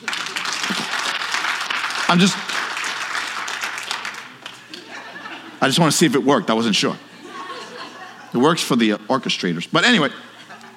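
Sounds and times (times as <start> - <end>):
audience clapping: 0.0 - 4.9
laughter: 0.2 - 1.1, 4.6 - 5.8, 7.0 - 8.6, 10.2 - 10.7
speech: 2.1 - 2.5, 5.6 - 7.1, 8.4 - 10.3.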